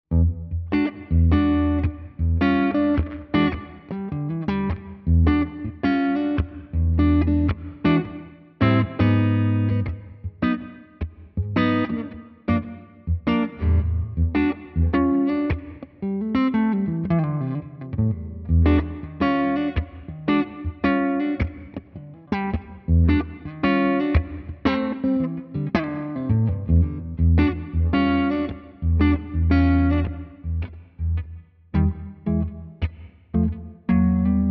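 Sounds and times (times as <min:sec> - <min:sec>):
Morgan Amps Jazzy Box AC20 guitar amplifier: 0:00.1 - 0:34.4.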